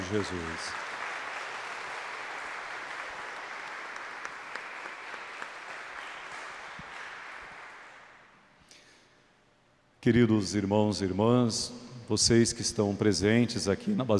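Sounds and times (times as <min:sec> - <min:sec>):
audience applause: 0:00.0 - 0:08.2
speech: 0:00.1 - 0:00.8, 0:10.0 - 0:14.1.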